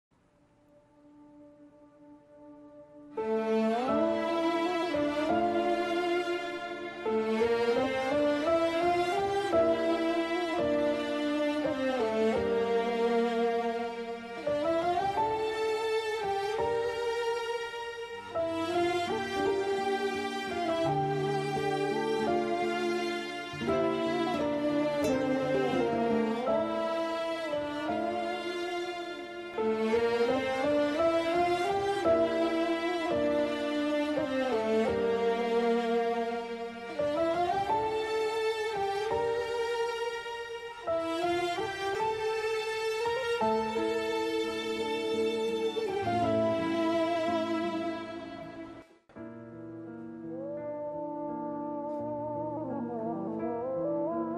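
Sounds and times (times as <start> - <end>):
slow instrumental background intro music: 0.3 - 54.3.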